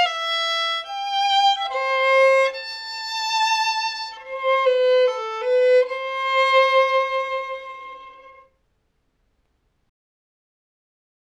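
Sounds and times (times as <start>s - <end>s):
violin melody: 0.0s - 8.6s.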